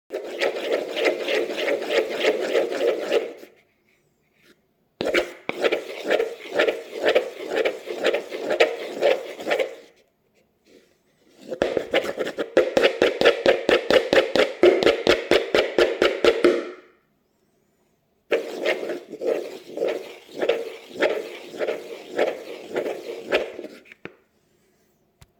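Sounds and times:
wooden spoon mixing ingredients in a plastic bowl: 0:00.1 - 0:03.7, 0:05.0 - 0:10.0, 0:11.2 - 0:16.7, 0:18.3 - 0:24.2.

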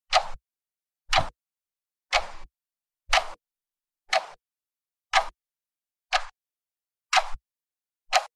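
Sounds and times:
clock ticking without reverb: 0:00.1 - 0:00.4, 0:01.1 - 0:01.4, 0:02.1 - 0:02.5, 0:03.1 - 0:03.4, 0:04.1 - 0:04.4, 0:05.1 - 0:05.4, 0:06.1 - 0:06.4, 0:07.1 - 0:07.4, 0:08.1 - 0:08.3.

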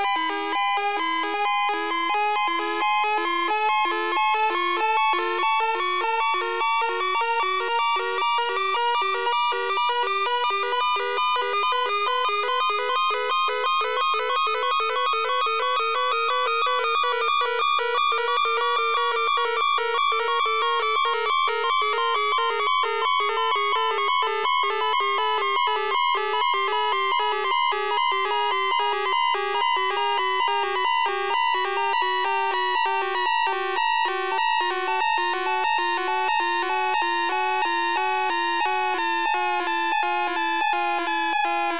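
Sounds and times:
artificial alarm siren signal: 0:00.0 - 0:41.7.

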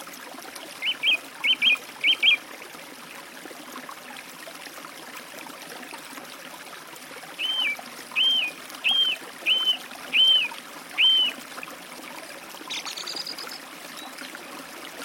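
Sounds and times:
song thrush singing by a forest stream: 0:00.8 - 0:02.4, 0:07.4 - 0:11.4.

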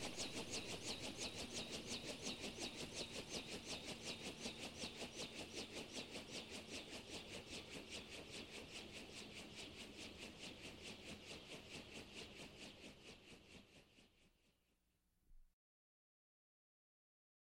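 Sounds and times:
helicopter descending and landing: 0:00.0 - 0:13.8.

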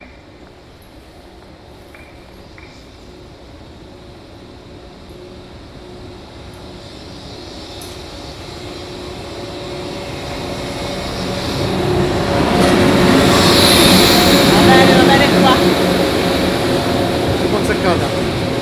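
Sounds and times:
Intercity train arriving at a station in Italy: 0:00.0 - 0:18.5.

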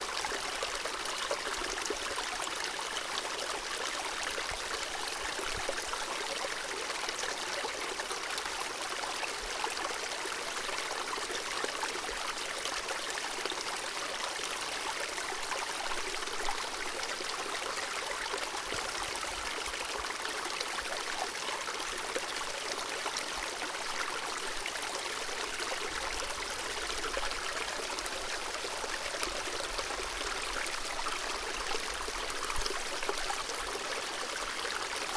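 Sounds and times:
small nameless stream flowing over rock bed in the Dolomite Alps: 0:00.0 - 0:35.1.

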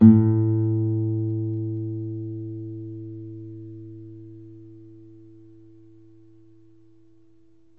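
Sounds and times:
single warm guitar note: 0:00.0 - 0:05.9.

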